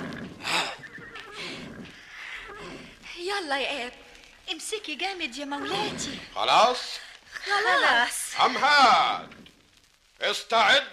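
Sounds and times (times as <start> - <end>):
horse breathing and rumbling: 0.0 - 3.0
horse neighing: 0.0 - 3.0, 5.6 - 6.8
speech: 3.3 - 9.4, 10.2 - 10.9.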